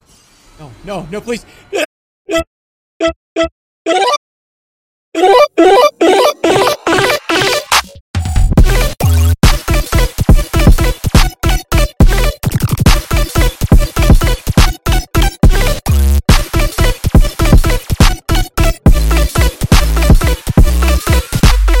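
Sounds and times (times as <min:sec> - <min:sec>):
dubstep music: 0:05.2 - 0:21.7.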